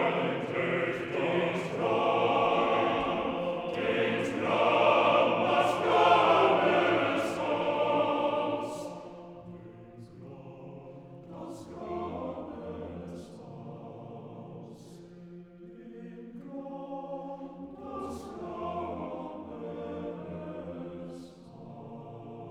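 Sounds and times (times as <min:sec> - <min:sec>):
male vocal quartet singing: 0:00.0 - 0:22.5.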